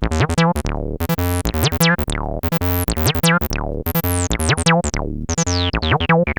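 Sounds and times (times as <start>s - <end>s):
TB-303 synth loops: 0.1s - 6.3s.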